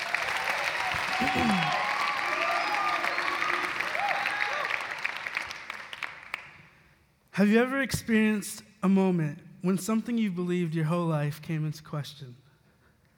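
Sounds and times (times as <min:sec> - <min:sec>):
audience clapping to welcome a speaker: 0:00.0 - 0:06.8
speech: 0:01.2 - 0:01.8, 0:07.4 - 0:12.4.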